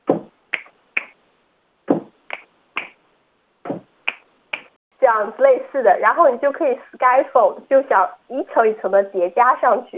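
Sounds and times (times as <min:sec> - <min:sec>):
finger snapping: 0:00.5 - 0:01.2, 0:02.3 - 0:03.0, 0:04.1 - 0:04.7
speech: 0:05.1 - 0:09.9.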